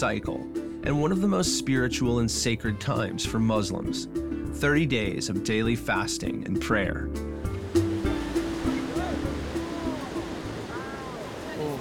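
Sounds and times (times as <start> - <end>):
speech: 0.0 - 7.3
ocean waves: 7.4 - 11.8.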